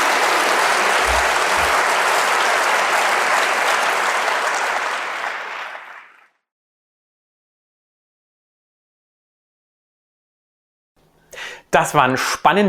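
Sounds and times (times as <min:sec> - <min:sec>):
audience applause: 0:00.0 - 0:06.4
speech: 0:11.8 - 0:12.6.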